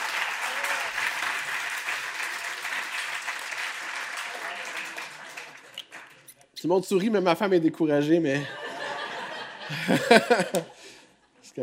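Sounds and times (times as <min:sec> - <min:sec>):
audience applause: 0:00.0 - 0:06.2
speech: 0:06.6 - 0:08.6, 0:09.7 - 0:10.8
laughter: 0:08.4 - 0:11.5.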